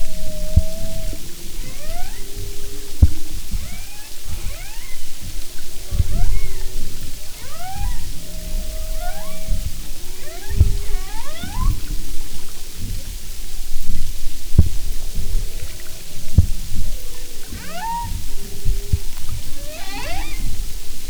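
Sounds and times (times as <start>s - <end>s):
clicks: 0.0s - 13.1s, 15.4s - 21.0s
humpback whale calls: 0.0s - 13.4s, 15.1s - 21.0s
low underwater rumbling: 0.0s - 21.0s.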